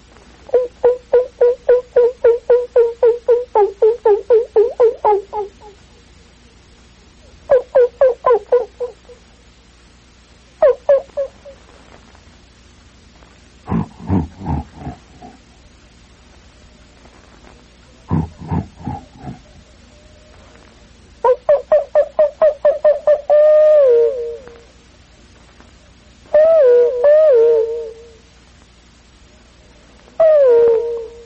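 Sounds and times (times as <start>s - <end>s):
wild animal howling in the bush: 0.5s - 5.8s, 7.5s - 9.2s, 10.6s - 11.6s, 13.7s - 15.4s, 18.1s - 19.7s, 21.3s - 24.6s, 26.3s - 28.1s, 30.2s - 31.2s
distant wild animals barking in the bush: 0.5s - 9.8s, 10.4s - 12.0s, 13.6s - 24.8s, 26.3s - 28.2s, 30.1s - 31.2s
wild animal grunting in the bush: 13.6s - 15.5s, 18.1s - 19.6s.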